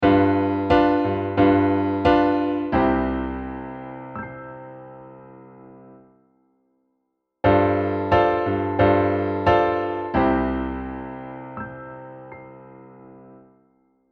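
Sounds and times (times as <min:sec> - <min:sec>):
iim7 chord over V: 0:00.0 - 0:05.1, 0:07.5 - 0:12.5.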